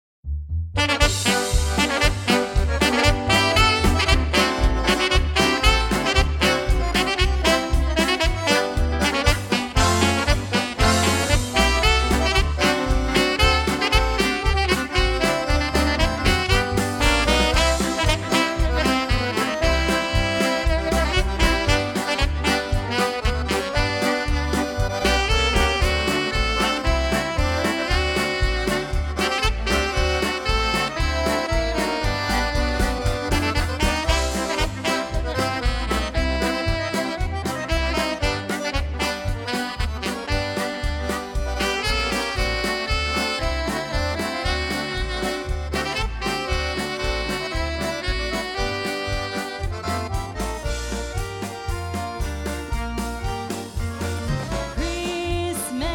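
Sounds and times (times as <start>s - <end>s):
Christmas polka music: 0.5s - 55.9s.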